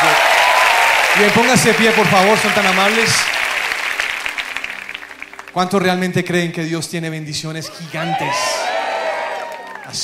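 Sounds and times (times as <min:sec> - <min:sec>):
audience applauding: 0:00.0 - 0:06.1, 0:07.7 - 0:10.0
speech: 0:01.2 - 0:03.4, 0:05.6 - 0:08.6.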